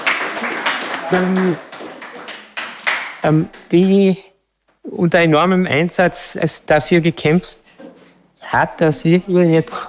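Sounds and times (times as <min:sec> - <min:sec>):
audience applause: 0:00.0 - 0:03.1
speech: 0:01.1 - 0:01.7, 0:03.2 - 0:04.3, 0:04.9 - 0:07.6, 0:08.4 - 0:09.8.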